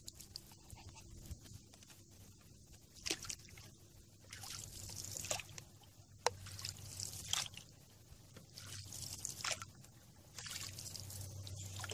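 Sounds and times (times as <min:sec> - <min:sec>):
low steady hum: 0:00.0 - 0:11.9
soft wet splashes and drips of canoe on river: 0:03.0 - 0:11.9.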